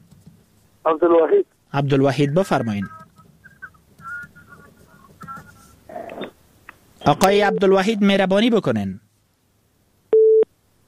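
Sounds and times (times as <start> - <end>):
speech: 0.8 - 3.0, 7.1 - 9.0
telephone busy signal after a caller's line from Helmand was cut off: 10.1 - 10.5.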